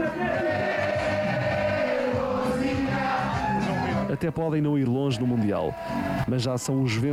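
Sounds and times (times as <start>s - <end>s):
large crowd chanting a hero's name in unison: 0.1s - 4.1s
speech: 4.2s - 7.1s.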